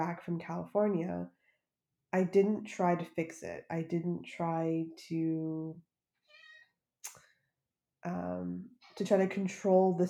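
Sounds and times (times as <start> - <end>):
speech: 0.0 - 1.4, 2.1 - 5.9, 8.0 - 10.0
pet cat meowing: 6.3 - 6.6.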